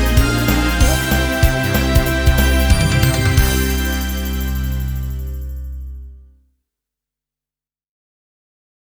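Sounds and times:
opening instrumental music: 0.0 - 6.2.

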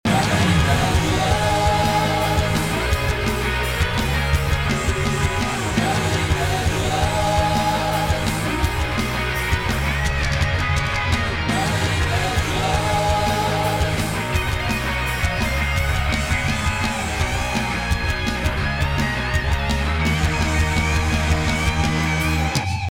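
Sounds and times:
frontend music loop: 0.0 - 22.8.

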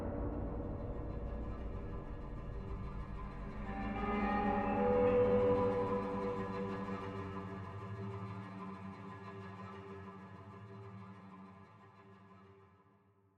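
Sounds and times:
spooky ship ambience: 0.1 - 9.2.

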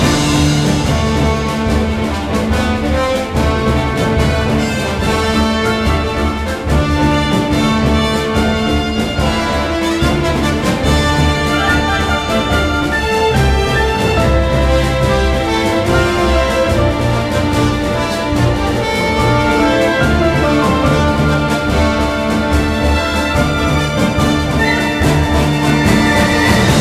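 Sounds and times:
normal battle music loop: 0.0 - 26.7.

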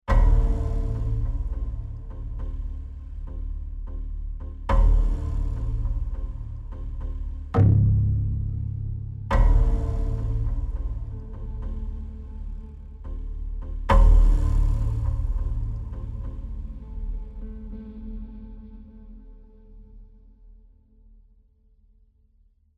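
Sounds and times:
tense mood music: 0.1 - 19.8.

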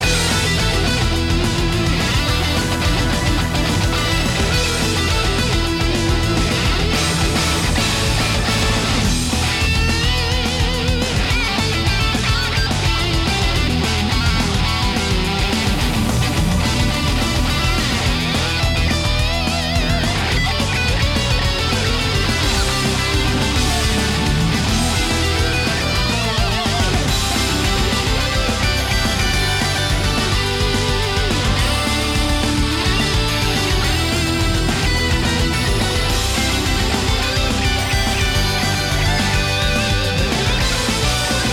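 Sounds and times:
battle music: 0.0 - 41.5.

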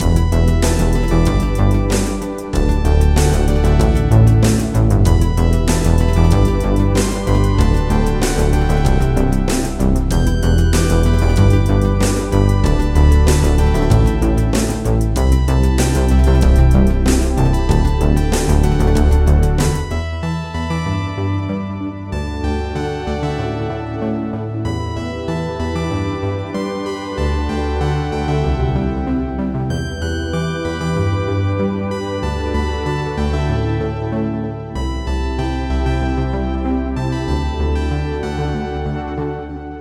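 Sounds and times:
lobby music: 0.0 - 39.7.

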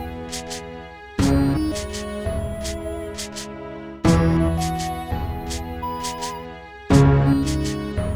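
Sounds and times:
town music loop: 0.0 - 0.6, 1.2 - 3.5, 4.1 - 6.4, 7.4 - 8.0.

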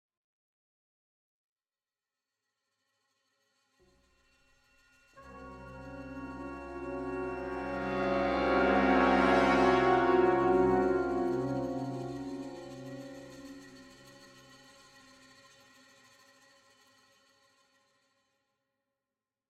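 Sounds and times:
spooky ship ambience: 5.2 - 15.7.

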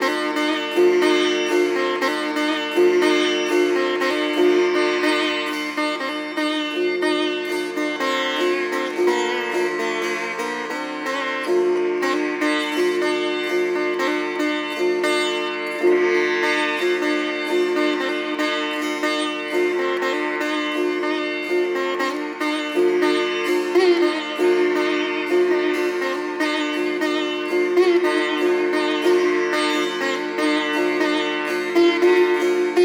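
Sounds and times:
sitar melody: 0.0 - 32.8.

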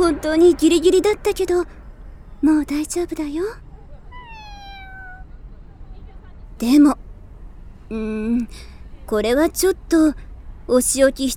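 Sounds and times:
low noise: 0.0 - 11.3
speech: 0.1 - 1.8, 2.4 - 3.6, 6.6 - 7.0, 7.9 - 11.3
cat meowing: 4.0 - 5.4.

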